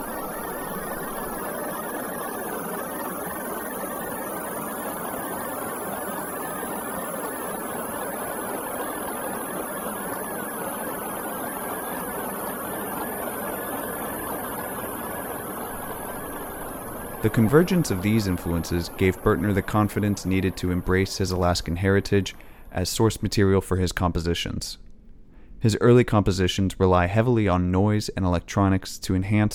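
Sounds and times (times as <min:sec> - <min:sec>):
granular synthesis texture imitating a flowing river: 0:00.0 - 0:23.5
speech: 0:17.2 - 0:24.8, 0:25.6 - 0:29.5.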